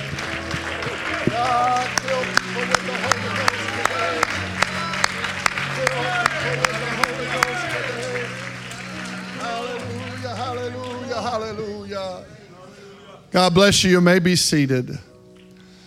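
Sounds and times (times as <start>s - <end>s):
audience clapping hands: 0.0s - 12.0s
speech: 13.3s - 15.1s.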